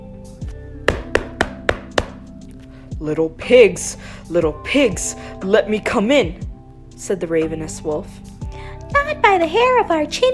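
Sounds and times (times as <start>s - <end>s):
angry knocking on a door: 0.9s - 2.2s
soft thud: 0.9s - 2.2s
speech: 3.0s - 8.3s, 9.3s - 10.3s.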